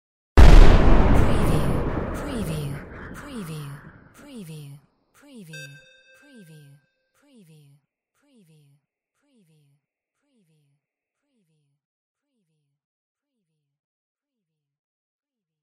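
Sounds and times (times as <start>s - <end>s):
war cannon fire: 0.4s - 4.0s.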